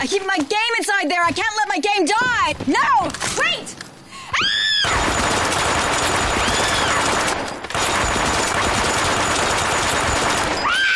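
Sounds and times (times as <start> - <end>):
speech: 0.1 - 3.8
machine gun fire: 4.9 - 10.9.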